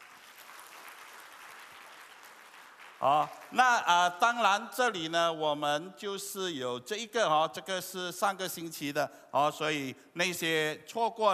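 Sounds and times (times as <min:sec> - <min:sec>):
audience applause: 0:00.0 - 0:03.6
speech: 0:03.0 - 0:11.3.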